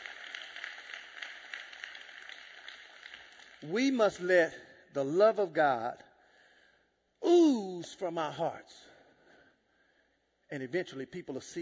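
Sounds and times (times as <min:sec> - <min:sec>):
audience clapping hands: 0:00.0 - 0:04.4
speech: 0:03.6 - 0:06.0, 0:07.9 - 0:08.9, 0:10.5 - 0:11.6.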